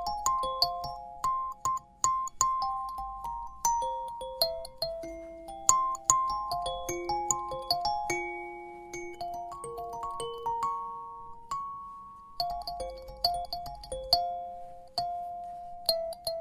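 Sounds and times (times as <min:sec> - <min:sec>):
five-note choir kalimba: 0:00.0 - 0:16.3.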